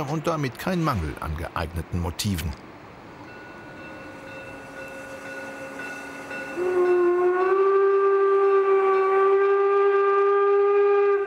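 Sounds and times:
speech: 0:00.0 - 0:02.7
steam locomotive whistle: 0:04.9 - 0:11.2.

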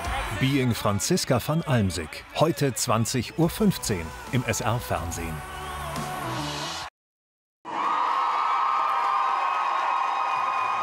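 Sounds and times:
speech: 0:00.4 - 0:06.1
crowd cheering loudly: 0:07.6 - 0:10.8.

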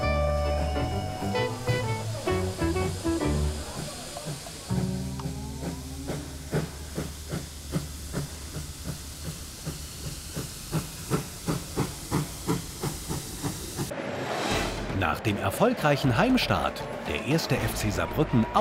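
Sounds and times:
steam locomotive chuffing as it pulls away: 0:00.0 - 0:14.0
speech: 0:15.2 - 0:18.5.

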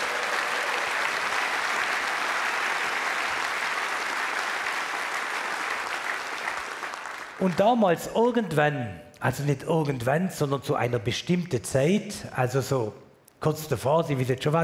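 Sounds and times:
audience clapping: 0:00.0 - 0:08.0
speech: 0:07.4 - 0:14.6.

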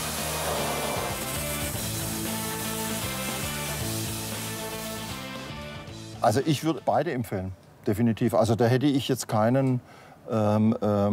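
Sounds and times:
foam fire extinguisher spraying: 0:00.0 - 0:05.8
tonal music: 0:00.0 - 0:07.5
speech: 0:06.2 - 0:11.1.

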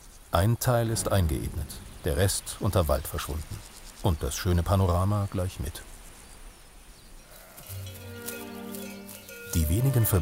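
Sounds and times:
steady outdoor rustle: 0:00.0 - 0:10.1
speech: 0:00.3 - 0:05.9, 0:09.5 - 0:10.1
sheep or goat bleating: 0:07.3 - 0:08.5.

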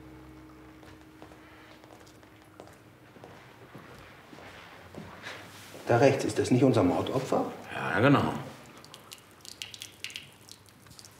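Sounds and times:
speech: 0:05.9 - 0:08.5
water dripping and splattering onto a hard floor: 0:08.7 - 0:11.1.

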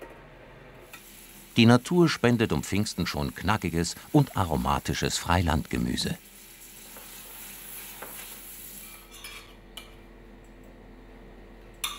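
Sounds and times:
spring onions and gnocchi sizzling in butter in a pan: 0:00.8 - 0:09.2
speech: 0:01.6 - 0:06.3.

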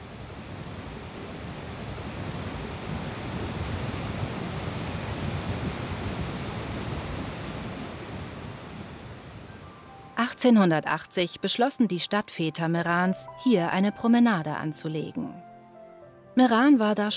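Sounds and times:
river Passa foaming through the Gilfklamm rocky gorge in Meran: 0:00.0 - 0:09.4
speech: 0:10.3 - 0:15.5, 0:16.4 - 0:17.1.

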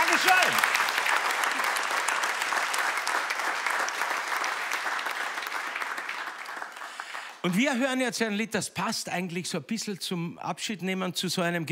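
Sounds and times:
audience applause: 0:00.0 - 0:07.5
speech: 0:00.2 - 0:00.8, 0:07.4 - 0:11.6.

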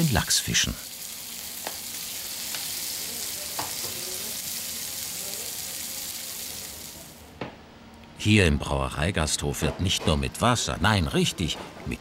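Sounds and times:
speech: 0:00.0 - 0:01.0, 0:08.2 - 0:12.0
char fillets frying in hot oil: 0:00.0 - 0:07.3.

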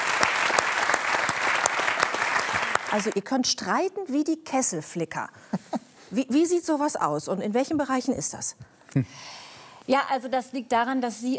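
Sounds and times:
audience applause: 0:00.0 - 0:03.2
speech: 0:02.9 - 0:11.3.

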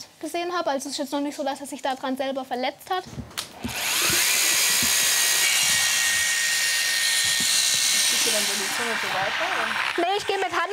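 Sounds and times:
speech: 0:00.0 - 0:03.9, 0:08.4 - 0:10.7
rotating dental disc grinding a horse's molars: 0:03.6 - 0:10.7.

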